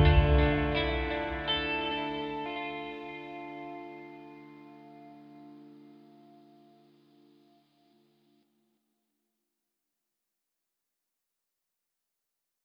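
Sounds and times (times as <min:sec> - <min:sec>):
dramatic guitar music: 0:00.0 - 0:08.4.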